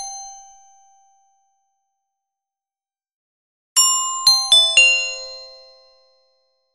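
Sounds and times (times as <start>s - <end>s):
contralto carillon bells: 3.8s - 6.4s.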